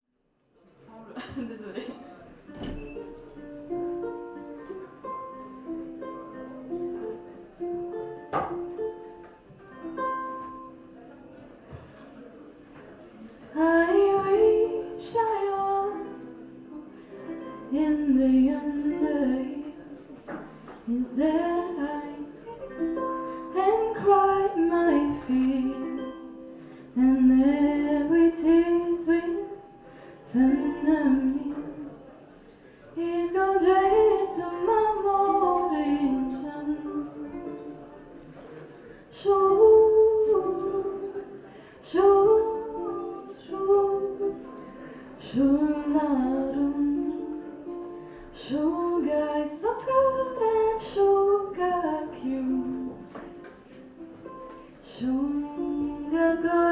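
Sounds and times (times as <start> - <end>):
ukulele: 1.2 - 56.7
person singing a song in Gaelic: 13.6 - 20.0, 20.9 - 31.9, 33.0 - 38.0, 39.2 - 53.4, 54.3 - 56.7.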